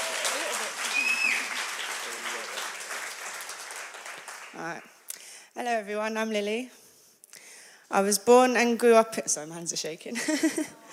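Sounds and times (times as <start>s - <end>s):
audience applause: 0.0s - 4.8s
whistle: 0.9s - 1.5s
speech: 4.6s - 4.9s, 5.6s - 6.8s, 7.9s - 10.9s.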